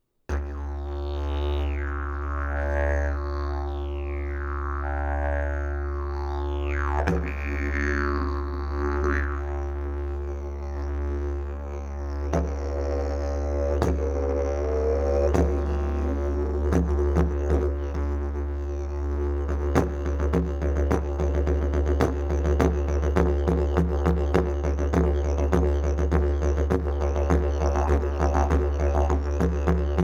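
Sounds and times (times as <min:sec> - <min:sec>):
didgeridoo: 0:00.3 - 0:30.0.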